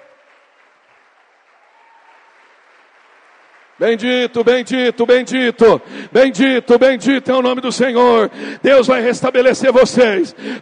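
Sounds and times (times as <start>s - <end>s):
audience applause: 0.0s - 4.3s
speech: 3.8s - 10.6s.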